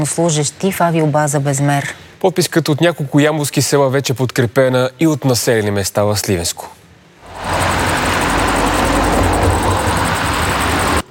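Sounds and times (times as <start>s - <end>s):
speech: 0.0s - 6.8s
dozens of cars driving out of an airbase: 7.2s - 11.1s.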